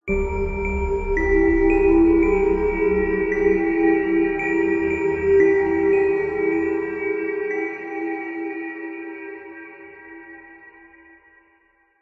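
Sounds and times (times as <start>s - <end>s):
ghostly horror musical riff in nursery rhyme style: 0.1s - 9.3s.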